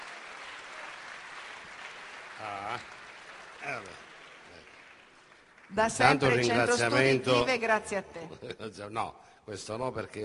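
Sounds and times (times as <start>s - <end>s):
audience applause: 0.0s - 6.9s
speech: 2.4s - 3.0s, 3.6s - 4.1s, 5.7s - 10.2s.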